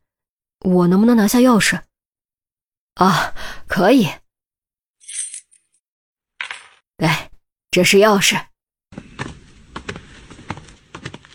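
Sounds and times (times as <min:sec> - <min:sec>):
speech: 0:00.6 - 0:01.9, 0:03.0 - 0:04.2, 0:07.0 - 0:08.5
hurried footsteps climbing stairs: 0:08.9 - 0:11.3.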